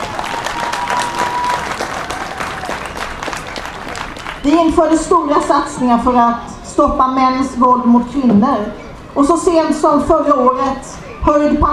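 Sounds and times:
audience applauding: 0:00.0 - 0:04.5
speech: 0:04.4 - 0:11.7.

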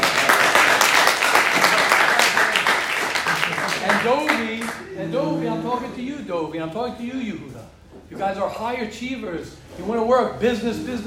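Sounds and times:
person clapping own hands: 0:00.0 - 0:04.8
speech: 0:04.1 - 0:11.0.

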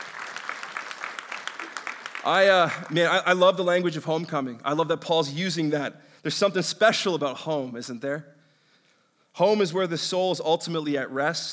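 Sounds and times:
audience clapping: 0:00.0 - 0:03.5
speech: 0:02.2 - 0:08.4, 0:09.4 - 0:11.5.

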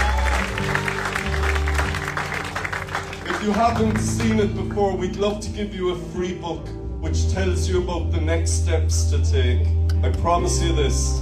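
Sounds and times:
audience applause: 0:00.0 - 0:04.5
speech: 0:03.4 - 0:11.2.

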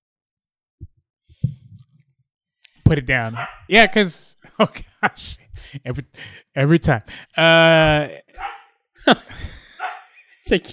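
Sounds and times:
speech: 0:02.9 - 0:09.6, 0:10.5 - 0:10.7
dog barking: 0:03.3 - 0:03.7, 0:08.4 - 0:08.7, 0:09.8 - 0:10.2
laughter: 0:04.5 - 0:06.2, 0:09.0 - 0:10.7.

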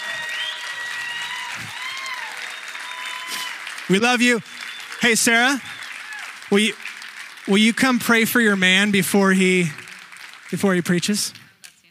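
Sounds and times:
faint cheering: 0:00.0 - 0:06.5
sustained applause from a large audience: 0:00.0 - 0:11.8
speech: 0:03.9 - 0:05.7, 0:06.5 - 0:06.9, 0:07.5 - 0:09.8, 0:10.5 - 0:11.4.

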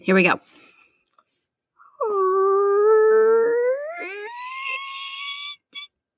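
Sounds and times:
voice imitating a creaky door opening: 0:02.0 - 0:05.9.

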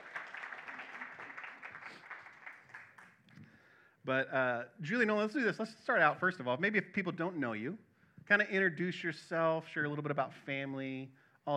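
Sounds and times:
audience clapping: 0:00.0 - 0:03.5
speech: 0:04.0 - 0:11.5.

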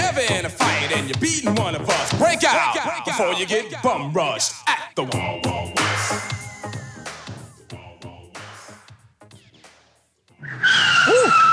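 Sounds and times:
speech: 0:01.0 - 0:06.3
car brakes screeching and tires skidding: 0:10.4 - 0:11.5.

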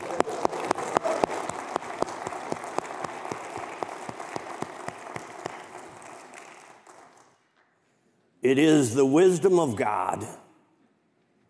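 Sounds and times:
audience applause for mothers: 0:00.0 - 0:07.4
speech: 0:08.5 - 0:10.4.

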